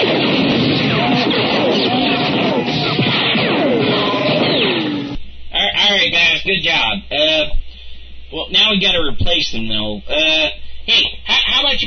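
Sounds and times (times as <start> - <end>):
gunfire barrage: 0.0 - 5.2
sweeping pitch-falling zaps: 0.0 - 5.2
speech: 6.5 - 7.6, 8.3 - 11.8.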